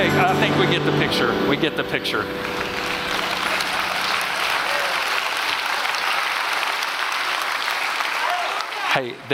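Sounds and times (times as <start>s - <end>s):
speech: 0.1s - 2.7s, 9.0s - 9.3s
audience applause: 2.4s - 9.3s.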